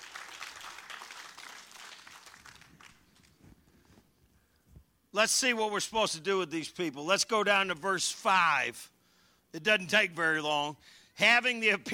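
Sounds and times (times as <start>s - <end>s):
audience applause: 0.0s - 3.2s
speech: 5.2s - 8.9s, 9.5s - 11.9s.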